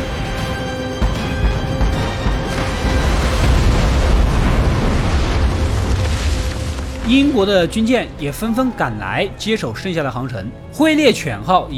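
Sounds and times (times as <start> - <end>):
depth charge explosions: 0.2 - 9.6
speech: 7.1 - 11.7.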